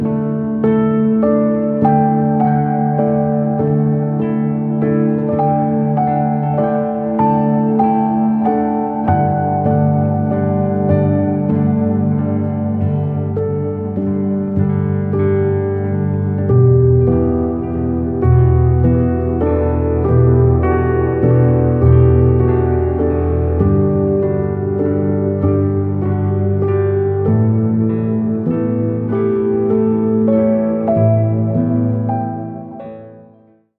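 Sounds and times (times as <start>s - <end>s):
meditative piano music: 0.0s - 33.7s.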